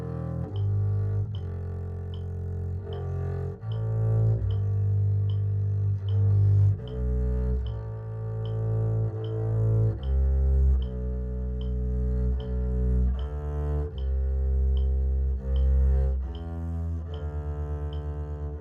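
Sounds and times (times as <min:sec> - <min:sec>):
double bass: 0:00.0 - 0:18.5.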